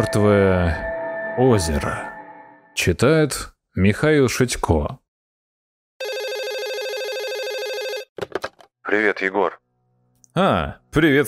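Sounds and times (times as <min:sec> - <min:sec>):
speech: 0:00.0 - 0:02.1, 0:02.8 - 0:05.0, 0:08.9 - 0:09.6, 0:10.4 - 0:11.2
mobile phone ringing: 0:06.0 - 0:08.1.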